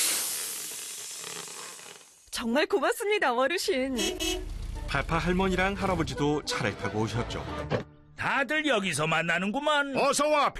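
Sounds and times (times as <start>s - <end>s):
tire being inflated with air: 0.0s - 2.3s
speech: 2.4s - 10.5s.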